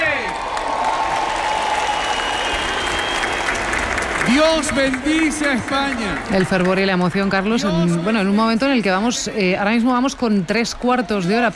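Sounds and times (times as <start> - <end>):
crowd cheering and applauding as a procession passes: 0.0 - 8.8
speech: 4.3 - 11.5.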